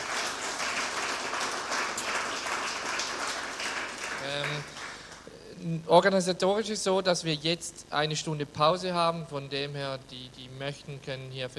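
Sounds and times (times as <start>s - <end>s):
audience applause: 0.0s - 5.3s
speech: 5.6s - 11.5s.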